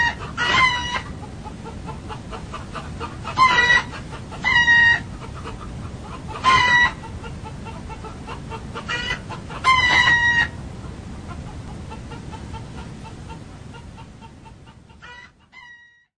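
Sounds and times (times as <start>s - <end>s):
roosters crowing: 0.0s - 10.6s, 15.0s - 16.0s.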